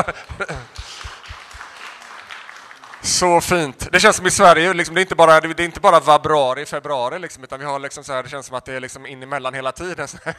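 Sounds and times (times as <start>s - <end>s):
speech: 0.0s - 1.1s, 3.0s - 10.3s
small audience scattered applause: 0.0s - 3.8s.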